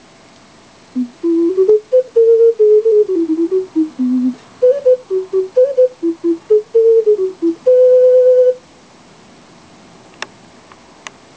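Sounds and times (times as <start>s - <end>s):
ocarina: 1.0s - 8.6s.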